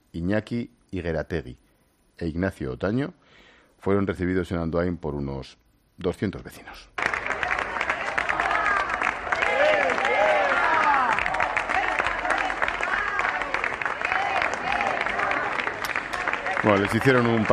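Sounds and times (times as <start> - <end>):
speech: 0.2 - 1.6, 2.2 - 6.9, 16.6 - 17.5
crowd applauding: 7.0 - 17.5.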